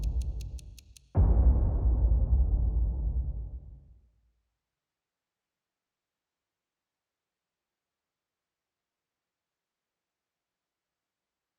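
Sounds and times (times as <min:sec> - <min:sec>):
epic hybrid underscore music: 0:00.0 - 0:03.9.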